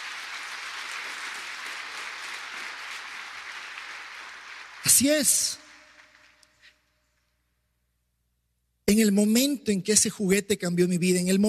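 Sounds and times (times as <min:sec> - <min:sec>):
crowd audience applauding: 0:00.0 - 0:06.8
speech: 0:04.8 - 0:05.6, 0:08.9 - 0:11.4.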